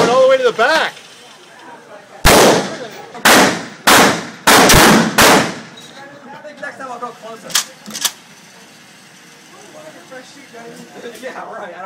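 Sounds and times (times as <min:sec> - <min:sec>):
people talking: 0:00.0 - 0:03.2, 0:05.8 - 0:11.8
shotgun fire in a video game: 0:02.2 - 0:05.8.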